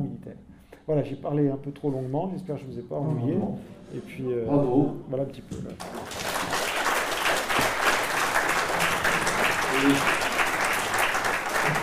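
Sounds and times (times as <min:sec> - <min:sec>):
speech: 0:00.9 - 0:06.4, 0:09.8 - 0:10.3
audience applause: 0:05.8 - 0:11.8.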